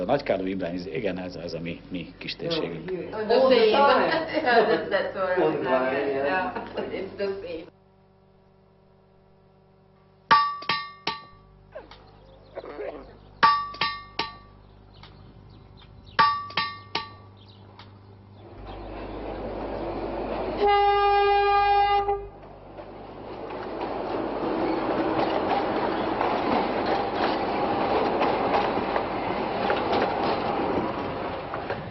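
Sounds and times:
speech: 0.0 - 7.7
metallic clanks of a train on old narrow-gauge rails: 10.3 - 11.4, 13.4 - 14.6, 16.2 - 17.3
train rumbling on old narrow-gauge rails in northern Hungary: 18.3 - 31.9
train horn blast: 20.6 - 22.4.

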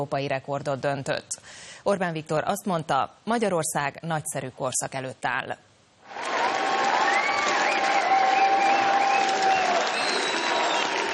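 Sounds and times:
speech: 0.0 - 5.7
crowd cheering and applauding: 6.1 - 11.1.

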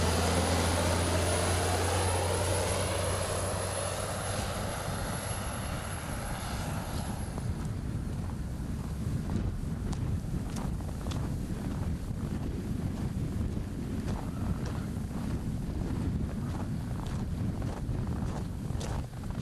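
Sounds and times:
stormy wind over open tundra: 0.0 - 19.4.

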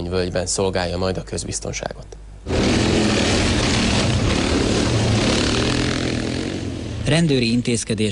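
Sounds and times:
speech: 0.0 - 2.0, 7.1 - 8.0
police quad engine patrolling forests around Veresegyház and Domonyvölgy: 2.5 - 7.1.

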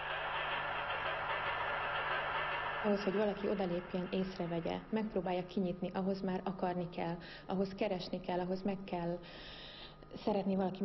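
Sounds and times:
rattling train clattering with low hum: 0.0 - 4.7
speech: 2.8 - 10.8.

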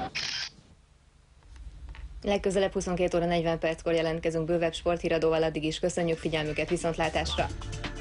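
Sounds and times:
camera shutter clicking during photos at a championship celebration: 0.1 - 0.6
speech: 2.3 - 7.9.

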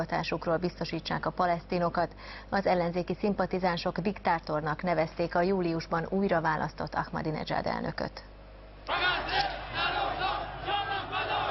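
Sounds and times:
speech: 0.0 - 9.5
street protesters shouting slogans: 8.9 - 11.4.

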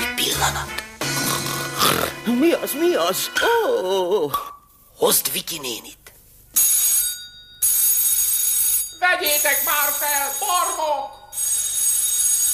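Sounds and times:
speech: 0.4 - 0.8, 1.8 - 6.0, 9.1 - 11.2
telephone ringing: 6.6 - 12.5.

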